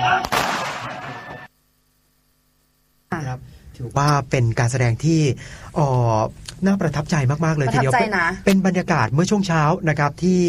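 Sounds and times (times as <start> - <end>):
gunshot at a gun-twirling display at an army camp in Ratchaburi: 0.2 - 1.2
speech: 3.8 - 10.4.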